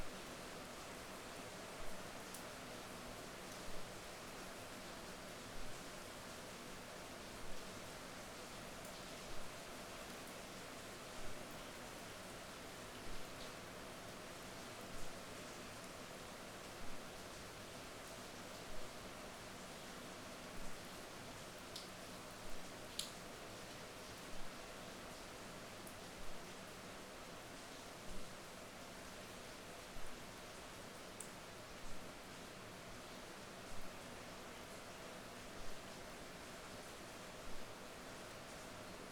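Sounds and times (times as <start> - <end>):
rain outside a window heard from inside a room: 0.0 - 39.1.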